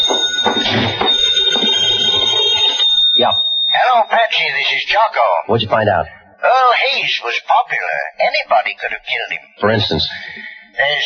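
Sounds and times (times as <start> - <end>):
telephone ringing: 0.0 - 5.3
speech: 4.4 - 11.0.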